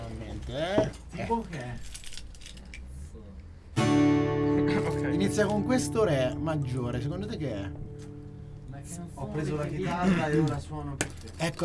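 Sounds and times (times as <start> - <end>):
speech: 0.5 - 2.0, 5.0 - 7.8, 8.8 - 11.6
keys jangling while opening a beer bottle: 1.8 - 2.8
loud sustained tonal sound: 3.8 - 10.3.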